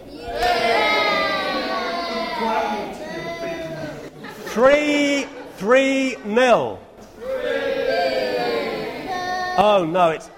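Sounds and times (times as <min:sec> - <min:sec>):
Manchester United supporters cheering a goal: 0:00.0 - 0:03.1, 0:07.2 - 0:09.2
speech: 0:04.6 - 0:06.8, 0:09.6 - 0:10.3.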